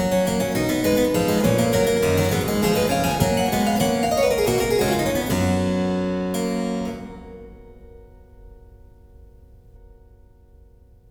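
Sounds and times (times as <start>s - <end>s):
keyboard prelude and fugue: 0.0s - 7.7s.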